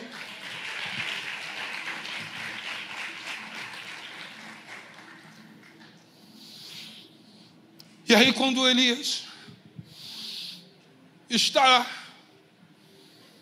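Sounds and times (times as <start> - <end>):
audience applauding: 0.0 - 6.0
speech: 8.1 - 9.3, 11.3 - 12.0.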